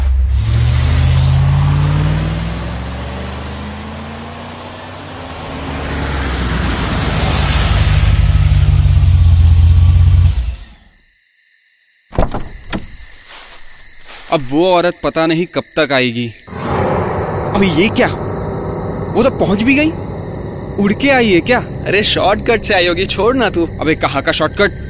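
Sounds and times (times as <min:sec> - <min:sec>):
car engine accelerating: 0:00.0 - 0:10.8, 0:16.5 - 0:24.8
speech: 0:14.3 - 0:16.5, 0:17.6 - 0:18.2, 0:19.1 - 0:20.0, 0:20.8 - 0:24.8.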